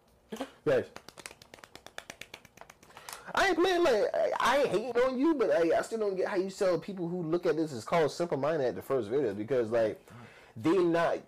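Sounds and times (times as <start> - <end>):
speech: 0.3 - 1.0, 3.4 - 11.2
applause: 0.9 - 3.2.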